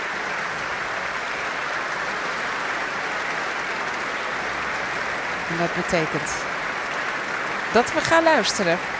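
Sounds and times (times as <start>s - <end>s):
concert audience applause: 0.0s - 6.2s
speech: 5.5s - 6.5s, 7.7s - 8.9s.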